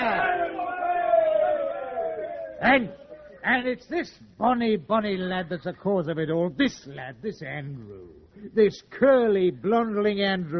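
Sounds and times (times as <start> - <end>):
sailors cheering after being saved: 0.0 - 3.4
speech: 2.6 - 10.5.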